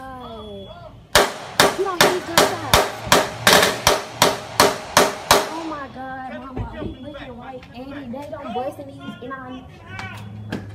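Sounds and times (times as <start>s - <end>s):
gunshots: 1.2s - 6.0s
speech: 7.2s - 10.3s.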